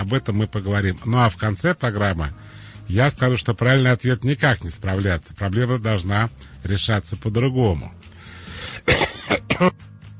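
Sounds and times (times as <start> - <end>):
speech: 0.1 - 9.9
man coughing: 8.7 - 9.8
man clearing throat: 8.8 - 9.8.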